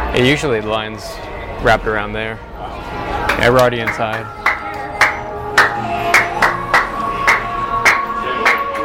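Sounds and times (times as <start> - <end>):
speech: 0.2 - 4.4
hand clapping: 3.3 - 8.8.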